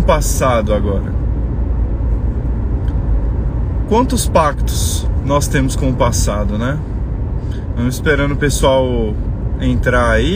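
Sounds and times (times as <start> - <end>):
car engine and road noise inside a car while driving: 0.0 - 10.3
speech: 0.1 - 1.2, 3.9 - 6.9, 7.8 - 10.3.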